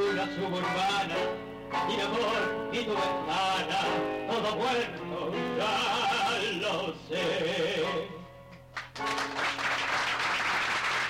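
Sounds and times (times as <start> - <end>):
speech: 0.2 - 8.1
audience applause: 8.8 - 11.0.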